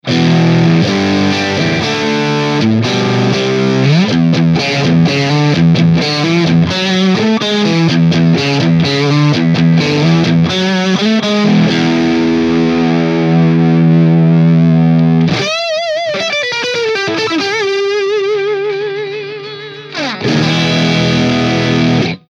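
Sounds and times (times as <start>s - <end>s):
Stratocaster electric guitar through Marshall amplifier: 0.0s - 22.2s.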